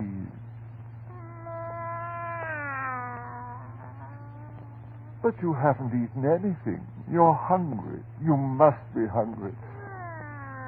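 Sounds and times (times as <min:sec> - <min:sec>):
steady low hum: 0:00.0 - 0:10.6
cat meowing: 0:01.1 - 0:05.2, 0:09.7 - 0:10.6
speech: 0:05.2 - 0:09.7.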